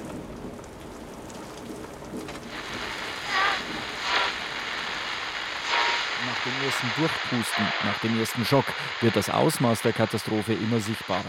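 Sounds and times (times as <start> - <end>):
heavy rain shower: 0.0 - 11.2
speech: 6.6 - 11.2.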